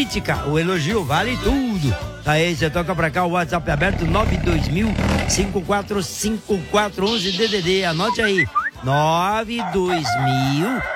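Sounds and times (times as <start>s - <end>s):
speech: 0.0s - 10.9s
rooster crowing: 9.6s - 10.9s.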